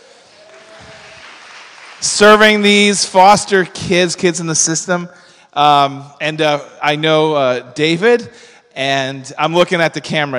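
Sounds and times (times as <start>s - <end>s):
audience applause: 0.0s - 2.9s
speech: 2.0s - 10.3s.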